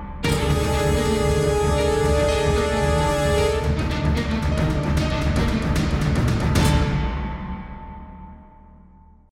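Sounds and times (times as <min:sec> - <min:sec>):
trailer stinger: 0:00.3 - 0:07.7.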